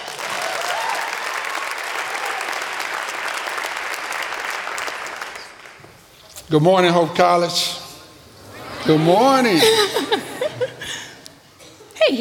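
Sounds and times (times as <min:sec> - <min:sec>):
audience applause welcoming speakers at a Hope College gathering: 0:00.0 - 0:05.8
speech: 0:06.5 - 0:07.8, 0:08.8 - 0:10.3
laughter: 0:08.4 - 0:12.0.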